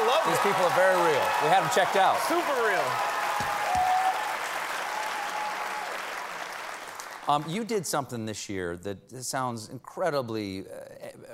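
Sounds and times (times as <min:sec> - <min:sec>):
studio audience cheering and applauding: 0:00.0 - 0:07.6
speech: 0:00.2 - 0:03.1, 0:07.3 - 0:11.1.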